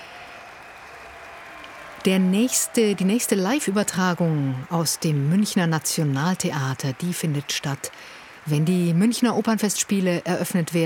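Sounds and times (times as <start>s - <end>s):
audience applause from an opera house: 0.0s - 10.8s
speech: 2.0s - 10.8s.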